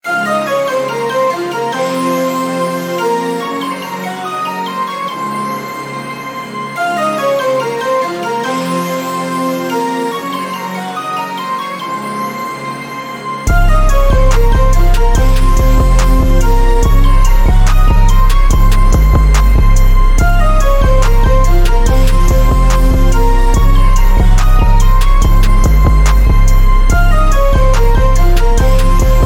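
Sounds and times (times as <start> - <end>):
instrumental music: 0.0 - 29.2.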